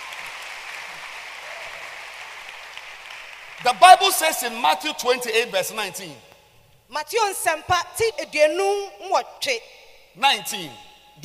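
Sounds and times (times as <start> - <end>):
people clapping hands: 0.0 - 3.8
speech: 3.6 - 6.3, 6.9 - 11.2.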